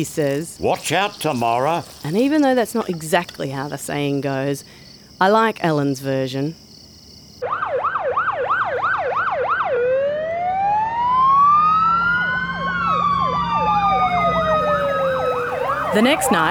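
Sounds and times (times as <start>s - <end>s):
speech: 0.0s - 6.6s, 15.9s - 16.4s
low traffic rumble: 0.0s - 7.3s, 10.6s - 16.4s
fire truck siren: 7.4s - 16.4s.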